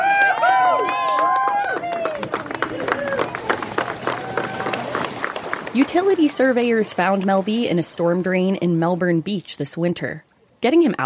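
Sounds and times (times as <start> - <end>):
crowd cheering and whooping on riverbank: 0.0 - 5.5
crowd clapping on riverbank: 0.0 - 6.9
crowd chatter: 1.8 - 6.1
speech: 5.8 - 11.0.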